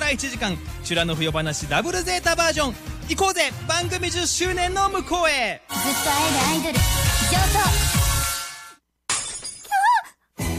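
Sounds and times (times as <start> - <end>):
speech: 0.1 - 8.0
dropped smartphone glass shattering on the ground: 9.1 - 9.8.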